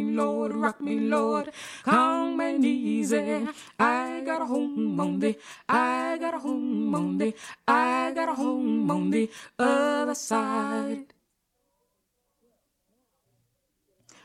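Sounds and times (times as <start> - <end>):
soprano singing a spiritual: 0.0 - 11.2.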